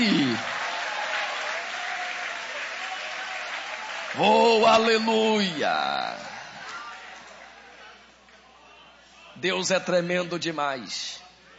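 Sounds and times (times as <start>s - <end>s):
audience applause: 0.0s - 7.5s
speech: 4.2s - 6.3s, 9.4s - 11.2s.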